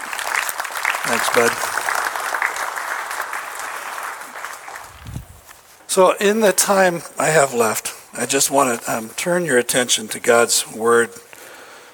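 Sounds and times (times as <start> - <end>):
church congregation applauding: 0.0 - 5.0
speech: 1.1 - 1.7, 6.0 - 11.3.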